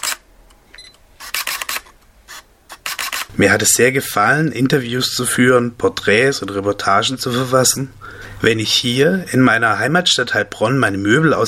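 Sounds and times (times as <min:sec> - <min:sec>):
camera shutter clicking while photos are taken: 0:00.0 - 0:00.2, 0:01.2 - 0:03.3
speech: 0:03.4 - 0:11.4.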